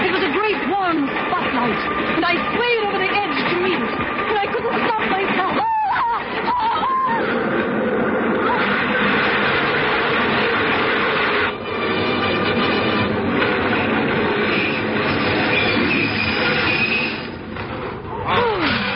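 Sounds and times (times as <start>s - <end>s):
train pulling into the station: 0.0s - 18.9s.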